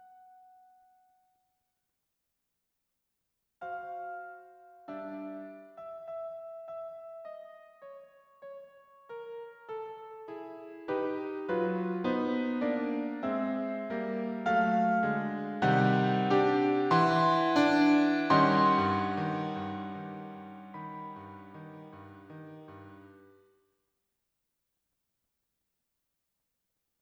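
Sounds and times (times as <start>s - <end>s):
atonal music: 9.3s - 22.7s.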